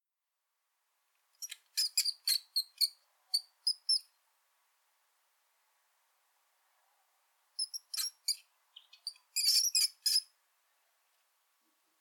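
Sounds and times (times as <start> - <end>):
mouse squeaks: 1.4 - 4.1, 7.6 - 10.3.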